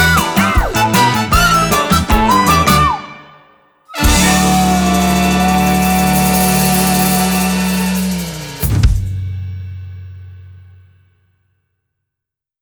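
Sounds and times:
positive whistle: 0:00.0 - 0:08.9.

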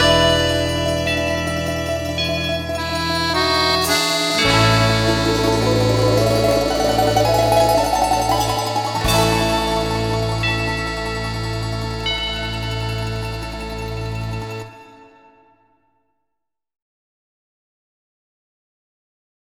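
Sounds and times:
evening bells ringing: 0:00.0 - 0:15.6.

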